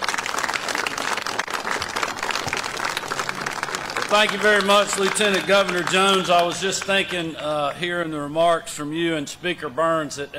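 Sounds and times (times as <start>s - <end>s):
audience applause welcoming Georgia Governor Kemp: 0.0s - 7.3s
speech: 4.1s - 10.3s.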